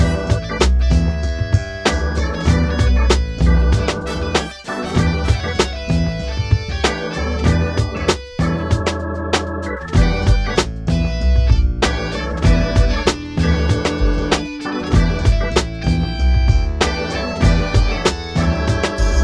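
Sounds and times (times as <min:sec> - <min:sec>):
funk rock music: 0:00.0 - 0:19.2.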